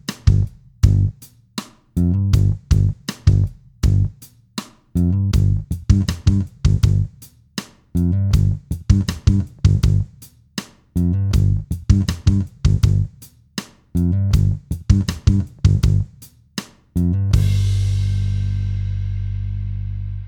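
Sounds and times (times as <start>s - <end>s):
bass at 80 BPM: 0.0s - 1.1s, 2.0s - 4.1s, 5.0s - 7.1s, 8.0s - 10.0s, 11.0s - 13.1s, 14.0s - 16.1s, 17.0s - 20.2s
drums at 80 BPM: 0.0s - 20.2s.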